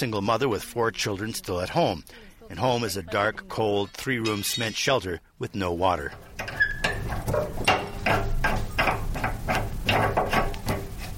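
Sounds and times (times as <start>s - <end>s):
speech: 0.0s - 6.3s, 7.3s - 8.3s
metal tap being opened with no water: 6.1s - 11.1s.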